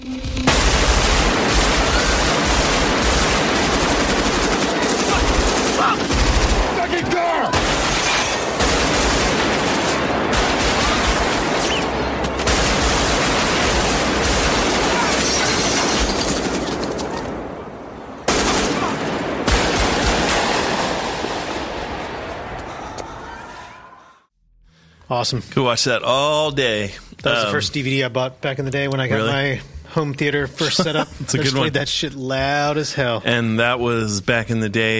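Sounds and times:
gunfire in a film shootout scene: 0.4s - 17.6s, 18.2s - 22.8s
speech: 25.2s - 34.9s
laughter: 30.4s - 32.7s.

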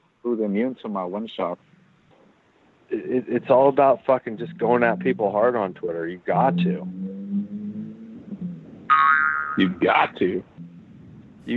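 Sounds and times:
speech: 0.3s - 1.7s, 2.9s - 7.0s, 9.6s - 10.6s
cartoon boing sound effect: 6.4s - 7.7s, 8.4s - 9.7s.

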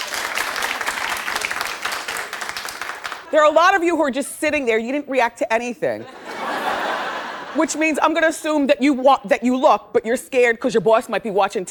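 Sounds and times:
audience clapping at a comedy show: 0.0s - 3.4s
speech: 3.3s - 6.2s, 7.6s - 11.6s
laughter: 6.0s - 7.8s.

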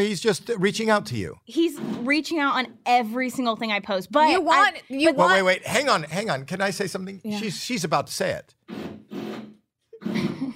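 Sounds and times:
speech: 0.0s - 8.8s
drilling in the building: 8.6s - 9.6s.

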